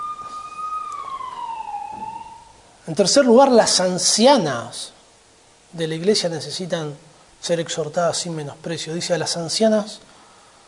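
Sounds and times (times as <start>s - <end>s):
alarm siren wailing: 0.0s - 3.1s
speech: 2.9s - 5.0s, 5.7s - 10.1s.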